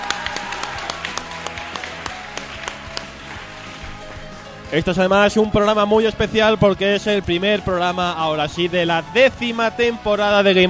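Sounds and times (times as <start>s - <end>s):
crowd applause: 0.0s - 4.7s
speech: 4.7s - 10.6s.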